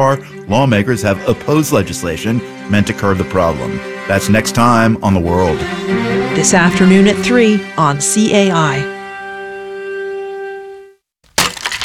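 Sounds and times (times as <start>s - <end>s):
speech: 0.0s - 9.0s
axe smashing furniture: 11.3s - 11.8s.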